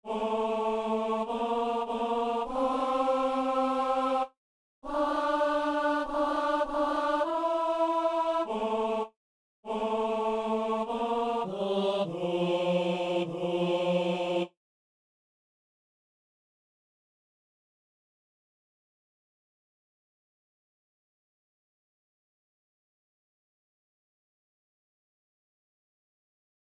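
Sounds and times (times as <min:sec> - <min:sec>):
tenor part of four voices singing: 0:00.1 - 0:09.1, 0:09.7 - 0:14.5.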